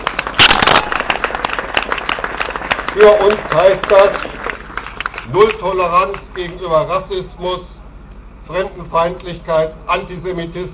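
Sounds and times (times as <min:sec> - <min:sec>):
applause: 0:00.0 - 0:06.7
speech: 0:03.0 - 0:04.3, 0:05.3 - 0:07.8, 0:08.5 - 0:10.7.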